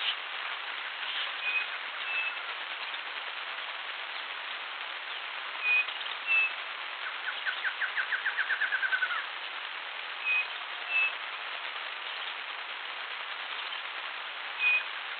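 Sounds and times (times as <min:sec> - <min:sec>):
steady hiss: 0:00.0 - 0:15.1
bird whistling and trilling: 0:01.4 - 0:02.4, 0:05.6 - 0:06.5, 0:07.2 - 0:09.2, 0:10.2 - 0:11.1, 0:14.6 - 0:14.9.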